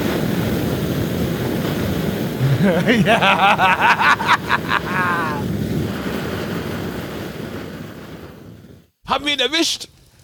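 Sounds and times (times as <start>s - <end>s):
flamethrower roaring: 0.0s - 8.0s
laughter: 2.4s - 5.4s
speech: 2.6s - 4.2s, 9.1s - 9.9s.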